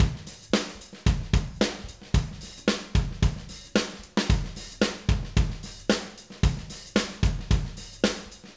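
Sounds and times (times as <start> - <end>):
live acoustic drums playing: 0.0 - 8.5.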